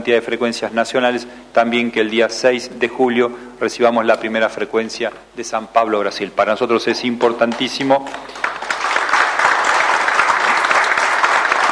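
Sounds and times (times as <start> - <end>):
speech: 0.0 - 8.5
audience applause interrupting an official speech: 7.2 - 11.6.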